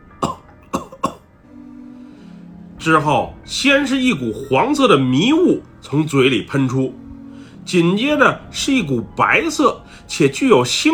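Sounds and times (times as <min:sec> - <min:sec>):
violent coughing: 0:00.2 - 0:01.2
speech: 0:02.8 - 0:07.0, 0:07.6 - 0:10.9.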